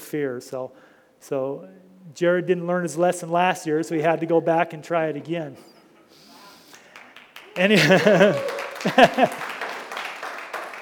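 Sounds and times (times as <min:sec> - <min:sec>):
speech: 0:00.1 - 0:05.8, 0:07.6 - 0:09.4
laughter: 0:05.2 - 0:09.9
people whooping and cheering: 0:06.3 - 0:10.3
audience clapping: 0:06.3 - 0:10.8.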